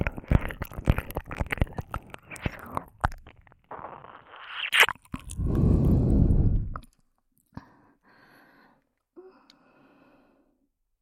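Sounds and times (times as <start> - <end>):
sweet ear licking: 0.0 - 7.0.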